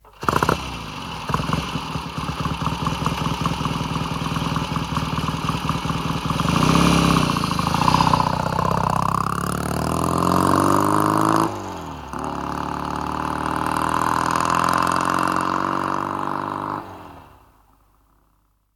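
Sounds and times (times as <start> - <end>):
motorcycle: 0.0 - 18.7.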